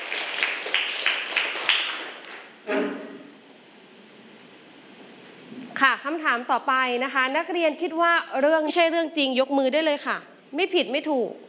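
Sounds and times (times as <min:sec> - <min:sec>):
classroom students clapping hands: 0:00.0 - 0:02.5
speech: 0:05.8 - 0:11.4.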